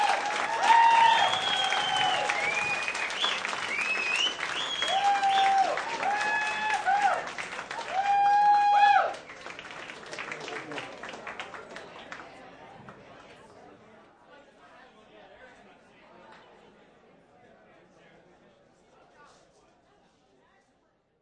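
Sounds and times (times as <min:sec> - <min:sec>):
group cheering and hooting in a bar: 0:00.0 - 0:07.2, 0:07.8 - 0:09.1
applause in a bar: 0:00.0 - 0:13.4
group whistling: 0:01.0 - 0:05.6.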